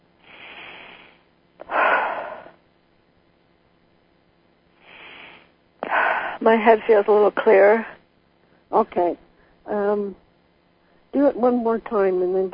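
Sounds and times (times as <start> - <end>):
person taking deep breaths and blowing out: 0.2 - 2.6, 4.8 - 6.4
speech: 6.4 - 7.9, 8.7 - 10.2, 11.1 - 12.5.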